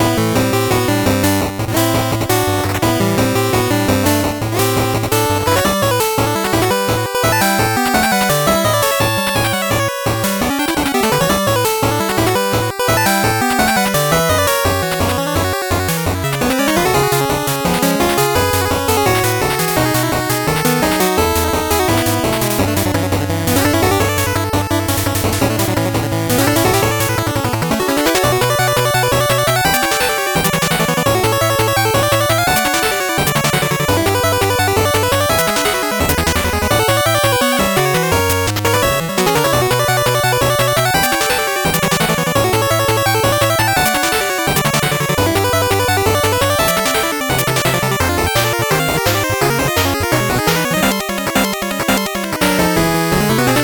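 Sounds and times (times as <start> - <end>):
8-bit background music: 0.0 - 53.6.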